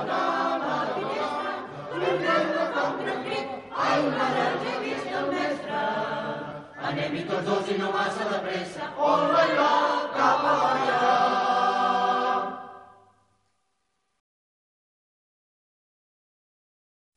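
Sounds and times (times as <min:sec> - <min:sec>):
choir: 0:00.0 - 0:13.1.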